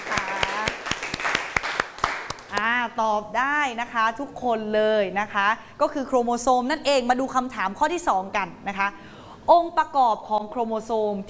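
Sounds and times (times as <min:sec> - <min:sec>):
students clapping: 0:00.0 - 0:02.7
speech: 0:03.0 - 0:11.2.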